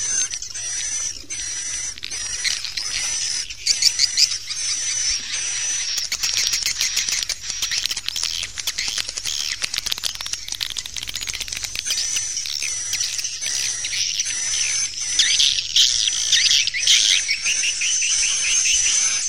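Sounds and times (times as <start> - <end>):
swiftlets twittering: 0.0 - 19.2
rapid dry clicking: 5.5 - 14.7.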